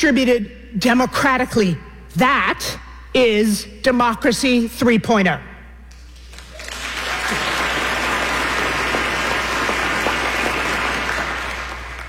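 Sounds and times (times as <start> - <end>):
speech: 0.0 - 5.5
audience clapping: 5.9 - 12.0.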